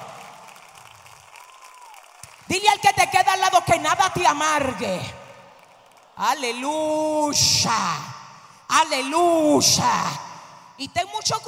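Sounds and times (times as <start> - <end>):
audience applause: 0.0 - 2.6, 5.4 - 6.4
speech: 2.5 - 5.2, 6.2 - 8.1, 8.7 - 10.2, 10.8 - 11.4.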